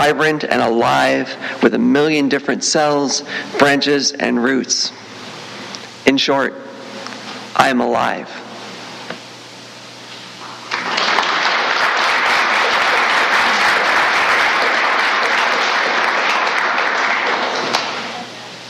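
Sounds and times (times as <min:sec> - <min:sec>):
speech: 0:00.1 - 0:05.1, 0:06.1 - 0:06.6, 0:07.6 - 0:08.4
audience applause: 0:10.6 - 0:18.2.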